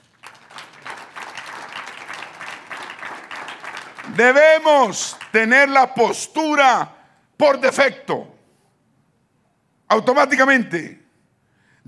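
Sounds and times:
audience applause: 0.0 - 5.8
speech: 4.1 - 8.3, 9.9 - 11.0.

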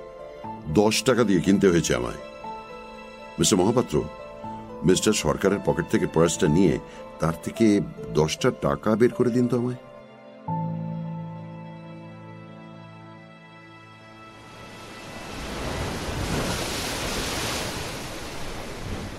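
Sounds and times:
soft tonal music: 0.0 - 16.5
speech: 0.7 - 2.3, 3.4 - 4.2, 4.8 - 9.9
ocean surf washing beside a seaside house: 14.1 - 19.1.

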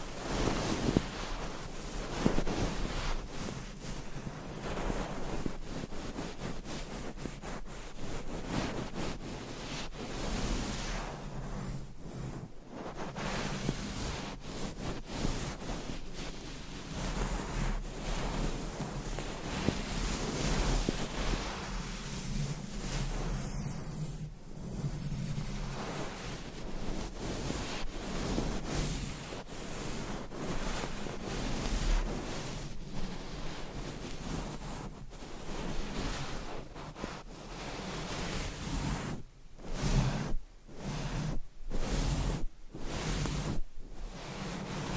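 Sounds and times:
scratching and rubbing: 0.0 - 44.9.

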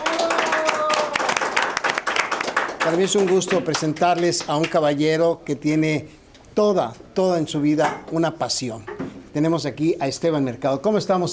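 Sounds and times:
crowd applauding: 0.0 - 4.8
speech: 2.8 - 11.3.

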